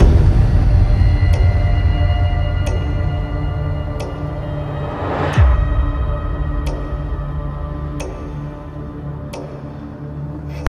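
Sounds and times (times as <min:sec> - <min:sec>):
horror music: 0:00.0 - 0:10.6.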